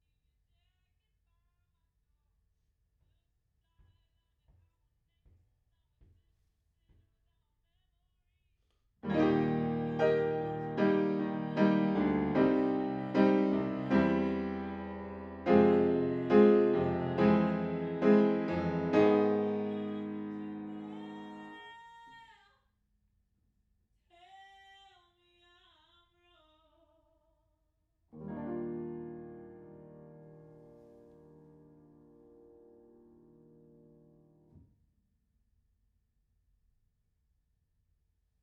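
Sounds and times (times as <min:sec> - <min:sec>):
piano in a room: 0:09.0 - 0:22.2, 0:28.2 - 0:34.6.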